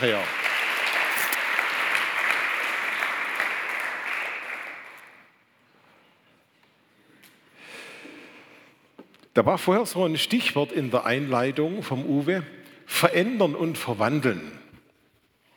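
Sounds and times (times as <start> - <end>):
speech: 0.0 - 0.4, 9.4 - 14.6
crowd clapping: 0.0 - 5.3.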